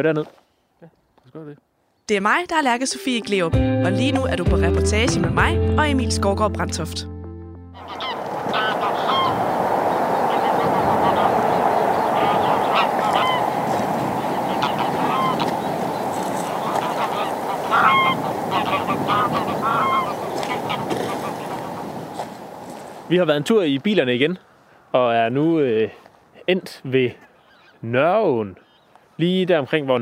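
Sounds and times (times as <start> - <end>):
speech: 0.0 - 7.1, 23.1 - 28.6, 29.2 - 30.0
flocks of greylag geese honking overhead: 7.8 - 23.1.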